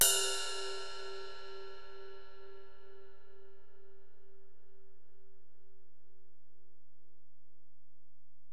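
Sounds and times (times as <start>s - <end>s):
ride cymbal on Alesis DM-PRO: 0.0s - 3.0s.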